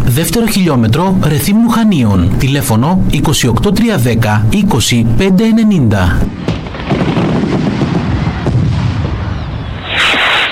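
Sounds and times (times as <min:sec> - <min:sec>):
speech: 0:00.2 - 0:07.7
rapid barrage of fireworks bursts: 0:06.3 - 0:10.5
bright rushing hiss of fireworks: 0:09.8 - 0:10.5.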